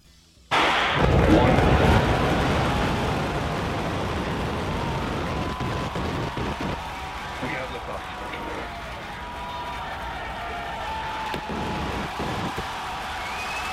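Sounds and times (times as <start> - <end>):
SpaceX rocket explosion: 0.5 - 8.0, 11.2 - 13.7
long dense crackling roar: 0.5 - 13.4.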